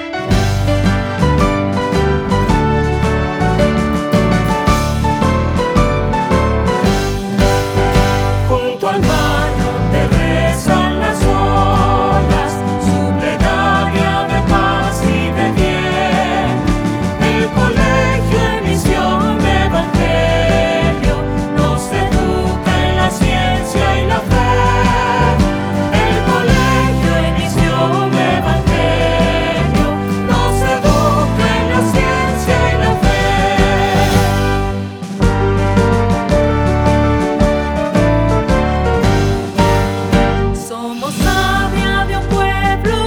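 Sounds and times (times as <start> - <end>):
anthem music: 0.3 - 42.9.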